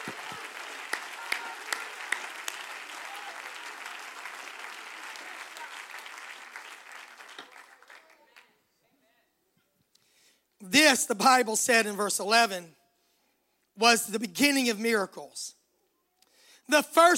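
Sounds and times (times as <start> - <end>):
audience applauding: 0.0 - 8.5
speech: 10.7 - 12.8, 13.8 - 15.6, 16.7 - 17.1.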